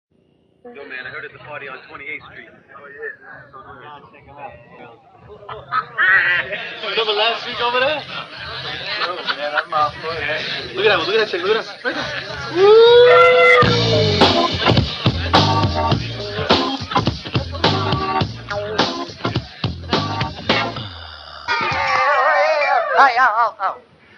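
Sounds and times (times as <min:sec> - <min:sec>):
laughter: 0:04.9 - 0:20.7, 0:21.5 - 0:23.3
introductory music: 0:13.6 - 0:21.8.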